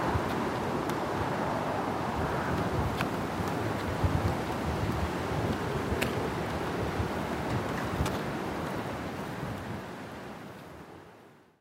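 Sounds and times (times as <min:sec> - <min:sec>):
Colwyn Bay soundscape: 0:00.0 - 0:10.9.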